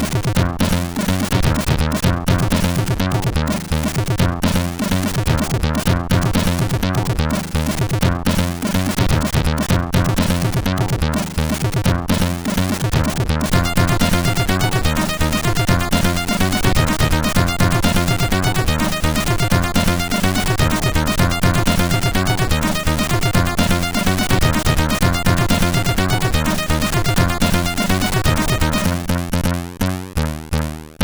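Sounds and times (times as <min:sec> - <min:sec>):
old techno music on a CSG8580R5 SID chip: 0:00.0 - 0:29.7.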